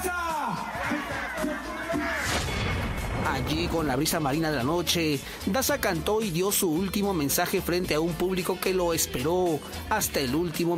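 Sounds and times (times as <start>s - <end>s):
crowd applause: 0.5s - 3.7s
speech: 3.4s - 10.7s.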